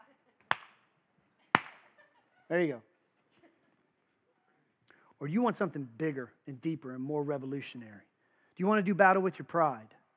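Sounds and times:
sharp hand claps: 0:00.5 - 0:00.8, 0:01.5 - 0:01.9
speech: 0:02.5 - 0:02.9, 0:05.2 - 0:10.0.

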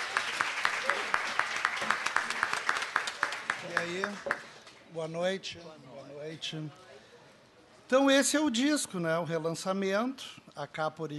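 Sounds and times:
audience applause: 0:00.0 - 0:04.6
speech: 0:03.8 - 0:06.9, 0:07.9 - 0:11.1.

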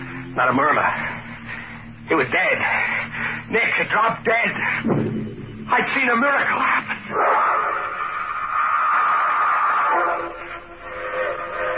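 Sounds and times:
speech: 0:00.4 - 0:01.1, 0:02.1 - 0:02.9, 0:03.5 - 0:07.4
freight train whistle: 0:07.1 - 0:11.7.

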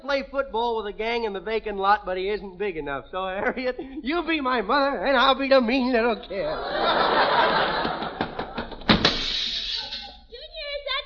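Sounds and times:
speech: 0:00.1 - 0:08.0
laughter: 0:06.3 - 0:10.1
heavy door slamming: 0:08.5 - 0:09.6.

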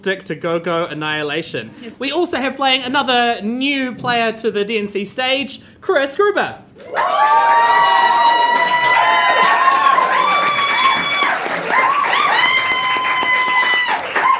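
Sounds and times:
speech: 0:00.0 - 0:08.7
crowd cheering and whooping: 0:06.8 - 0:14.3
audience clapping: 0:06.9 - 0:14.3.

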